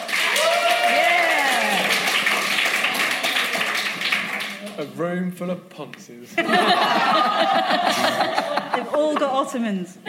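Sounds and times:
audience clapping: 0.0 - 5.0
voices whooping and calling out: 0.3 - 1.9
speech: 4.8 - 10.0
laughter: 6.4 - 10.0.

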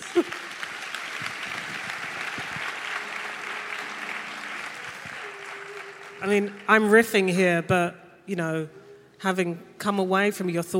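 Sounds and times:
audience applause: 0.0 - 6.9
speech: 6.2 - 10.7.

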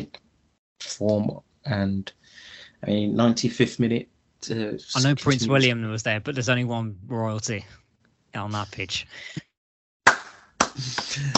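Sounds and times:
speech: 1.0 - 7.8, 8.4 - 9.5, 10.8 - 11.3
hand clapping: 10.0 - 11.3.

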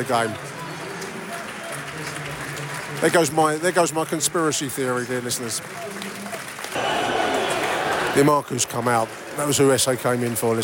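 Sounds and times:
speech: 0.0 - 0.5, 2.9 - 6.2, 8.2 - 10.6
large stadium crowd applauding: 1.2 - 4.0, 4.8 - 10.6.

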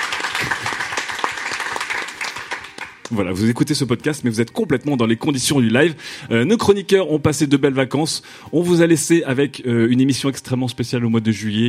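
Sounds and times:
audience applause: 0.0 - 3.2
speech: 3.1 - 11.6.

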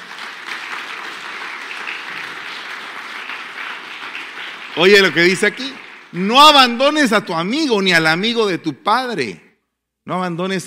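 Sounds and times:
audience applause: 0.0 - 7.2
speech: 4.8 - 9.4, 10.1 - 10.6.

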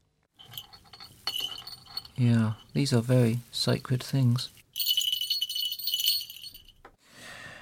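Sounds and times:
small hawk bells jingling: 0.4 - 6.8
speech: 2.2 - 4.6.

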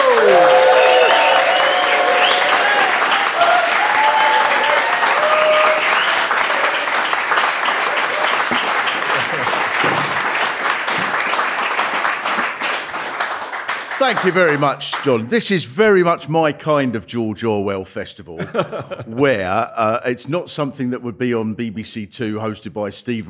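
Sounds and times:
whoops and cheers: 0.0 - 6.9
audience applause: 0.0 - 15.3
laughter: 8.9 - 10.2, 18.3 - 20.0
speech: 14.1 - 23.2.

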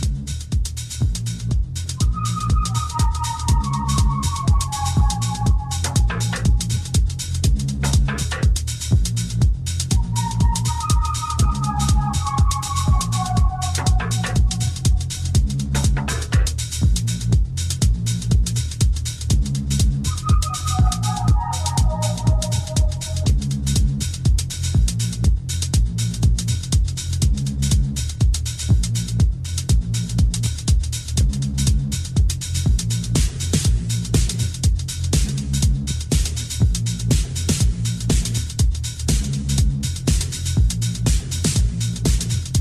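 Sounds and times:
deep throbbing Reese bass in a Detroit techno track: 0.0 - 42.5
Detroit techno beat: 1.9 - 18.0, 19.3 - 25.9, 28.8 - 42.5
short descending synth phrases: 2.0 - 7.0, 10.0 - 15.2, 20.1 - 23.3.

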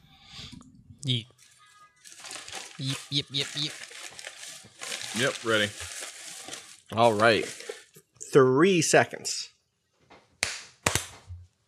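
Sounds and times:
speech: 1.0 - 1.4, 2.8 - 3.8, 5.1 - 5.9, 6.9 - 7.6, 8.3 - 9.5
hard hand clap: 10.4 - 11.3.

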